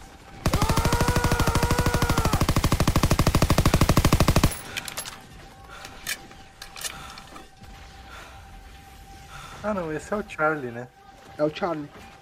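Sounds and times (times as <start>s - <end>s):
machine gun firing: 0.4s - 4.8s
person yelling: 0.5s - 2.4s
speech: 9.7s - 12.1s.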